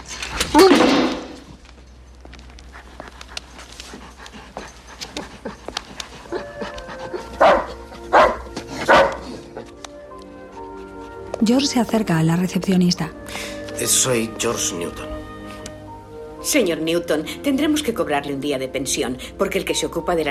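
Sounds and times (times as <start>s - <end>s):
speech: 0.5s - 1.0s, 11.5s - 15.2s, 16.5s - 20.2s
dog panting and whimpering: 2.3s - 11.4s
dog barking inside a kennel cage: 7.2s - 9.7s.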